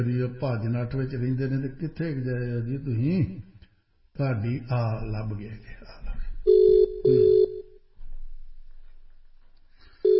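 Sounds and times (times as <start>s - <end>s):
speech: 0.0s - 3.5s, 4.2s - 7.3s
telephone ringing tones as a call is placed: 6.5s - 7.8s.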